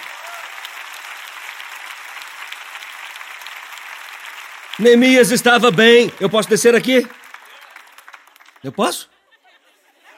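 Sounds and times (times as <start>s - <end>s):
audience clapping: 0.0s - 9.0s
speech: 4.8s - 7.2s, 8.6s - 9.1s
laughter: 8.6s - 10.1s.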